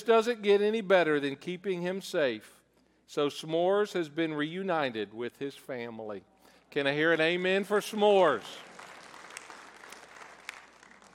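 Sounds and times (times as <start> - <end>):
speech: 0.0 - 8.7
audience applauding: 7.2 - 11.1.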